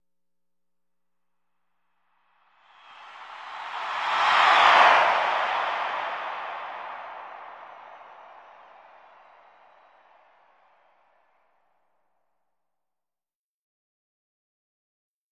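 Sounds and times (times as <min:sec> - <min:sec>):
arena crowd cheering: 0:02.7 - 0:11.1.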